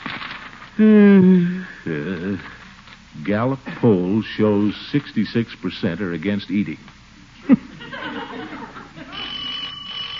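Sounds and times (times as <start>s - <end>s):
speech: 0.8s - 7.7s
laughter: 7.4s - 9.3s
doorbell ringing: 9.1s - 10.1s.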